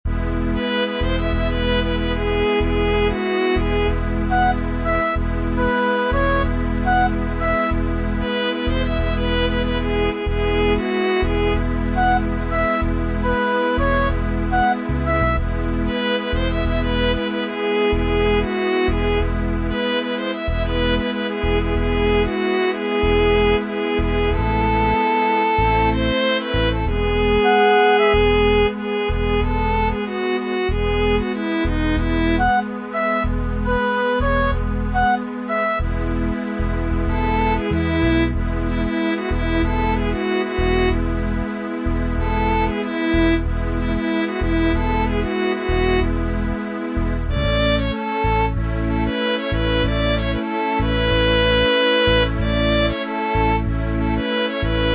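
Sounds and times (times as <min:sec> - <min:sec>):
violin: 0:00.0 - 0:54.9.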